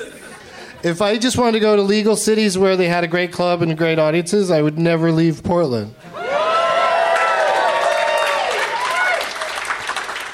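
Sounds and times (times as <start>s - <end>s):
speech: 0.8s - 6.1s
shouted cheers and whoops: 6.1s - 9.8s
crowd applauding: 6.2s - 10.3s.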